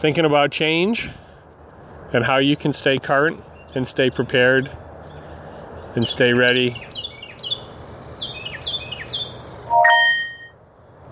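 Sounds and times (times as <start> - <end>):
speech: 0.0 - 1.2, 2.1 - 4.8, 6.0 - 6.9
birds chirping: 0.3 - 11.1.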